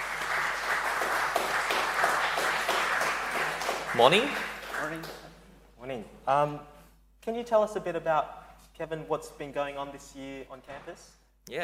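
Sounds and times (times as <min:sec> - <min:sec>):
applause: 0:00.0 - 0:05.4
speech: 0:04.0 - 0:05.2, 0:05.9 - 0:11.6.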